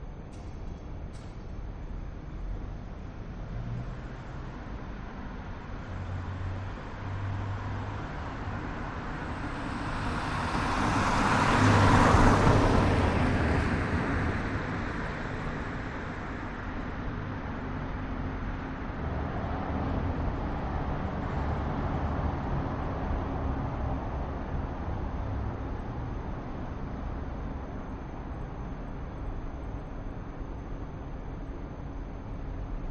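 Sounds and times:
city ambience at night: 0.0 - 32.8
cars passing by in a city at night: 5.8 - 27.2.

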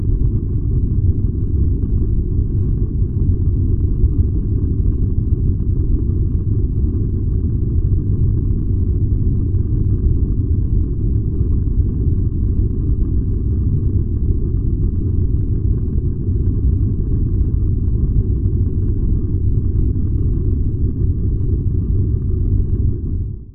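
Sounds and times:
household furnace burner roaring: 0.0 - 23.5.

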